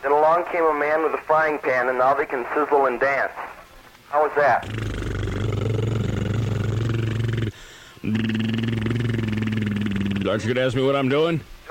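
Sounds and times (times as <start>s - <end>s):
speech: 0.0s - 4.9s, 10.3s - 11.6s
person buzzing lips to imitate an idling engine: 4.6s - 10.5s.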